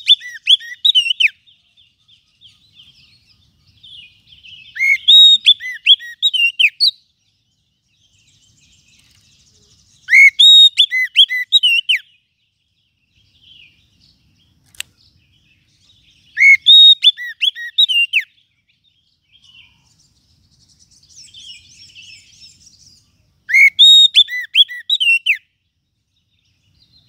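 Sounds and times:
lovebird calls: 0.0s - 7.0s, 9.0s - 12.1s, 16.2s - 18.4s, 23.5s - 25.4s
single click: 14.6s - 15.0s.

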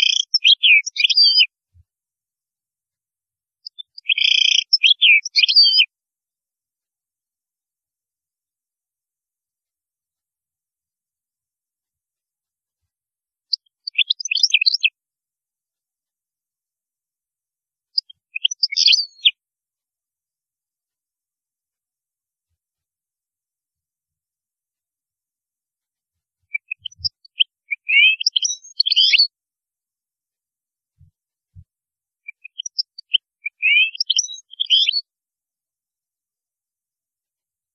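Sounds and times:
European goldfinch song: 0.0s - 1.5s, 3.6s - 5.9s, 13.8s - 14.9s, 18.0s - 19.3s, 26.5s - 29.3s, 32.3s - 35.0s.

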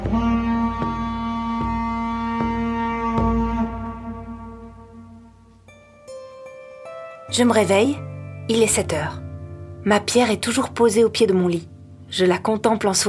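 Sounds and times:
dull thumps: 0.0s - 4.3s
long low foghorn blast: 0.0s - 5.5s
speech: 7.3s - 9.2s, 9.8s - 13.0s.

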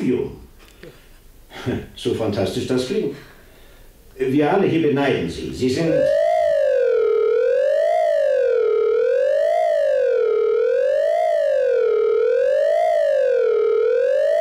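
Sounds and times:
speech: 0.0s - 1.0s, 1.6s - 3.3s, 4.2s - 6.3s
alarm siren wailing: 5.7s - 14.3s.

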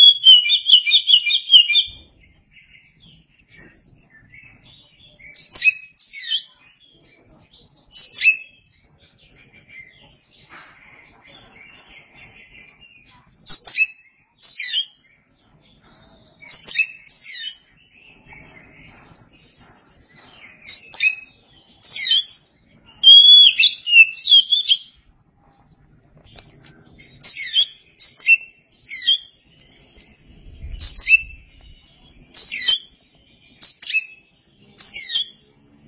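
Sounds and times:
Oriental magpie-robin singing: 0.0s - 35.8s.

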